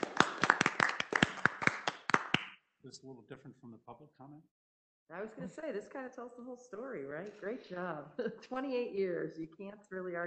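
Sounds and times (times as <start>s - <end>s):
scattered hand clapping from a small group honouring a finance team: 0.0s - 2.6s
speech: 2.9s - 10.2s.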